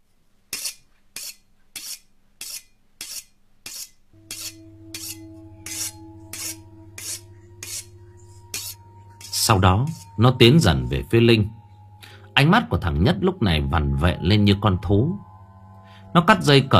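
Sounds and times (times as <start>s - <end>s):
sharp shiny butcher knife sharpened against a table edge: 0.5s - 10.1s
low sustained droning tone: 4.2s - 16.7s
speech: 9.5s - 11.6s, 12.4s - 15.3s, 16.1s - 16.7s.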